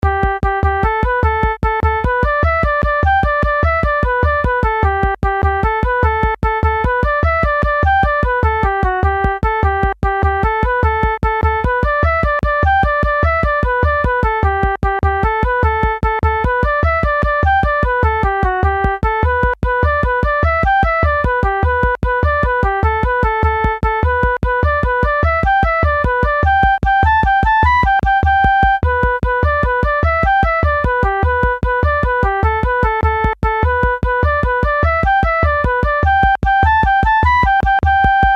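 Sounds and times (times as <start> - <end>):
jig with moderate rhythm: 0.0 - 38.3.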